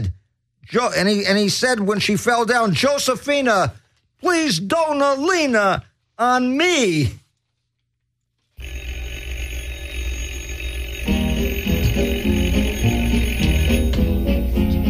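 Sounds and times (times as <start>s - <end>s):
speech: 0.1s - 7.2s
doorbell ringing: 8.6s - 14.8s
bouncy instrumental tune with a bass line: 11.0s - 14.8s.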